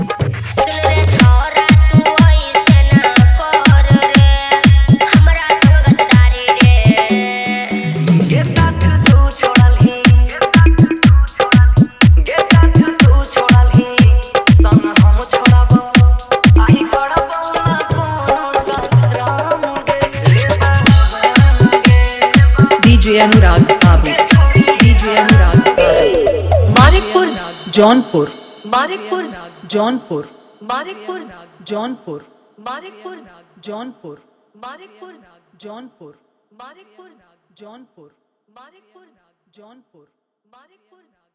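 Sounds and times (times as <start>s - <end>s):
Bhojpuri DJ song with hard dholak: 0.0s - 31.3s.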